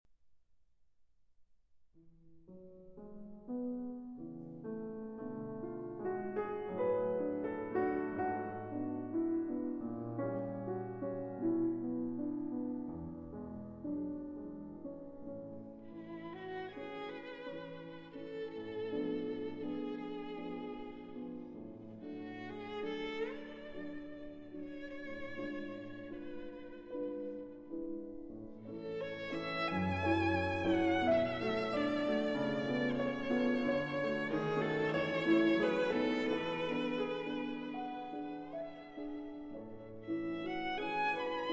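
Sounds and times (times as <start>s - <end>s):
piano: 1.9s - 41.5s
violin: 5.2s - 12.7s, 15.3s - 41.5s.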